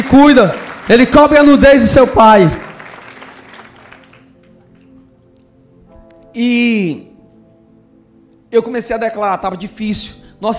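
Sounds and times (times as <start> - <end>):
speech: 0.1 - 2.6, 6.4 - 7.1, 8.5 - 10.5
audience applause: 0.2 - 4.3.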